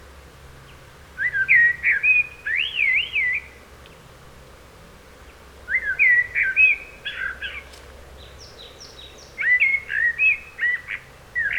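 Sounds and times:
Turdus merula common blackbird singing mellow whistled notes: 0:01.2 - 0:03.6, 0:05.7 - 0:07.6, 0:08.3 - 0:11.5.

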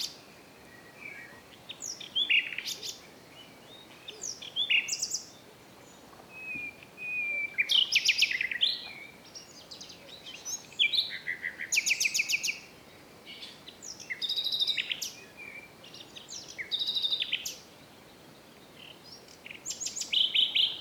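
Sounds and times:
Common nightingale Luscinia megarhynchos singing: 0:00.0 - 0:20.8.

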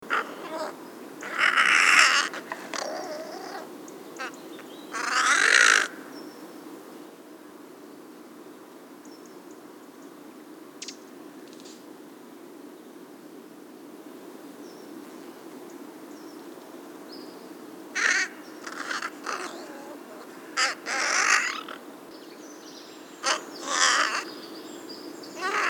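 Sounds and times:
Corvus corone calling: 0:00.0 - 0:06.0, 0:18.0 - 0:21.8, 0:23.0 - 0:24.6, 0:25.3 - 0:25.6.

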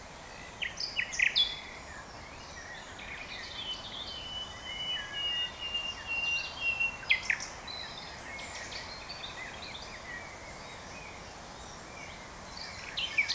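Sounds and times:
common nightingale song with whistled and sharp descending notes: 0:00.0 - 0:13.3.

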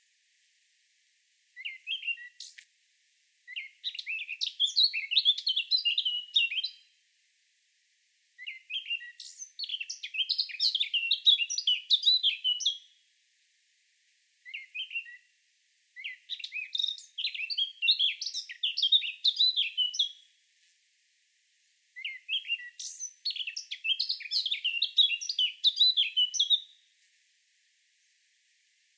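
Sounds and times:
Eurasian blackcap Sylvia atricapilla song: 0:01.6 - 0:02.6, 0:03.5 - 0:06.8, 0:08.4 - 0:12.9, 0:14.5 - 0:15.3, 0:16.0 - 0:20.2, 0:22.0 - 0:26.8.

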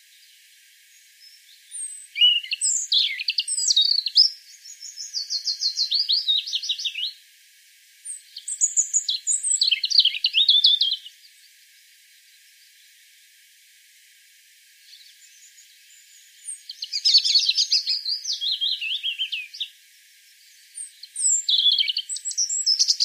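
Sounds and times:
European robin song: 0:01.0 - 0:07.2, 0:08.0 - 0:11.4, 0:14.8 - 0:19.8, 0:20.4 - 0:23.0.

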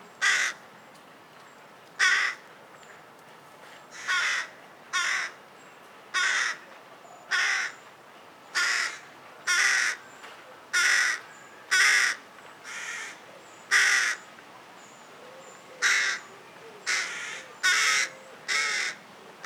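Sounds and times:
carrion crow cawing, Corvus corone: 0:00.2 - 0:00.6, 0:02.0 - 0:02.4, 0:04.0 - 0:05.4, 0:06.2 - 0:06.6, 0:07.3 - 0:07.8, 0:08.6 - 0:10.0, 0:10.8 - 0:14.2, 0:15.8 - 0:19.4.

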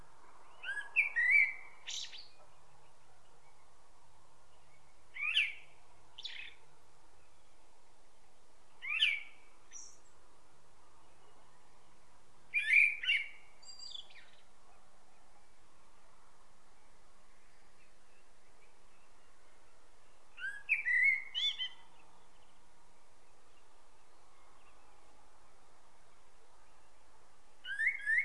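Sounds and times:
common blackbird singing: 0:00.4 - 0:03.7, 0:04.5 - 0:06.6, 0:08.8 - 0:10.2, 0:12.5 - 0:14.5, 0:17.4 - 0:22.6, 0:27.6 - 0:28.2.

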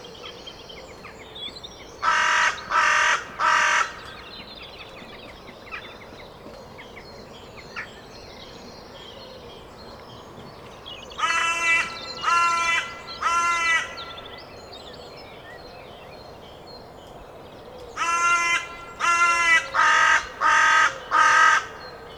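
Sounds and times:
carrion crow Corvus corone giving loud harsh even caws: 0:02.0 - 0:04.0, 0:11.2 - 0:14.2, 0:18.0 - 0:22.0.

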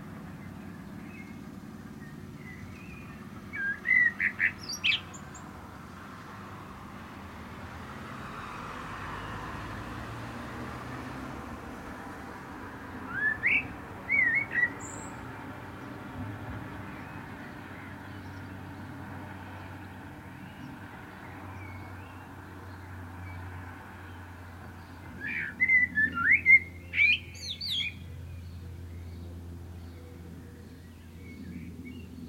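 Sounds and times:
common blackbird song: 0:00.4 - 0:05.5, 0:13.0 - 0:15.9, 0:19.6 - 0:32.2.

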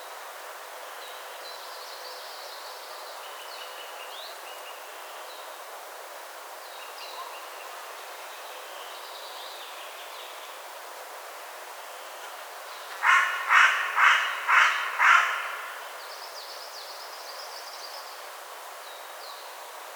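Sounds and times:
Carrion crow Corvus corone cawing: 0:12.9 - 0:16.0.

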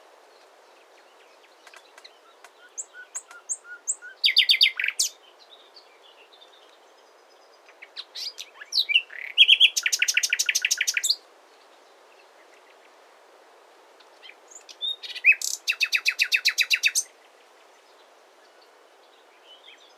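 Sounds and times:
common nightingale Luscinia megarhynchos song: 0:00.0 - 0:13.2, 0:13.9 - 0:19.9.

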